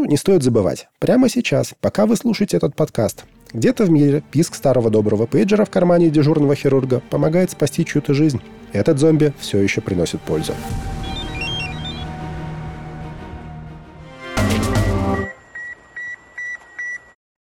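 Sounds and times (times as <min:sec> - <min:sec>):
speech: 0:00.0 - 0:11.0
fax machine connecting tones: 0:11.0 - 0:12.1, 0:14.5 - 0:17.1.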